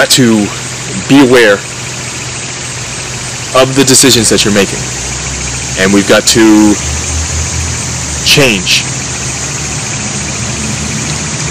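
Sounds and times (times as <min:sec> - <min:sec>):
speech: 0:00.0 - 0:01.8, 0:03.6 - 0:07.2, 0:08.2 - 0:09.0
fire truck heavy engine rumbling and idling: 0:00.0 - 0:11.4.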